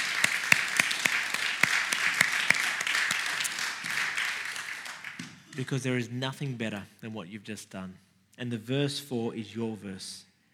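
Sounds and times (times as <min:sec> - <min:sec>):
audience applause: 0:00.0 - 0:05.6
speech: 0:05.6 - 0:10.3.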